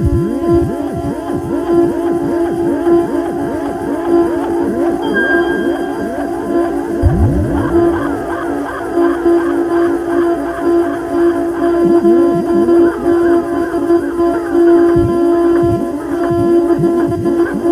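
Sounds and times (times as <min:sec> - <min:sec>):
theremin: 0:00.0 - 0:17.6.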